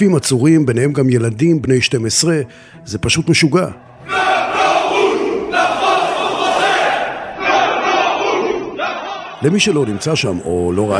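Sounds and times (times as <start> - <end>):
speech: 0.0 - 4.3, 9.4 - 10.9
rioting crowd shouting: 4.0 - 10.0.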